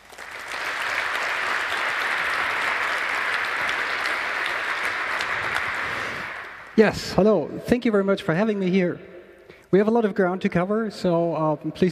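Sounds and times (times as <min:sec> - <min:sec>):
large audience applause: 0:00.0 - 0:06.8
speech: 0:06.8 - 0:09.1, 0:09.7 - 0:11.8.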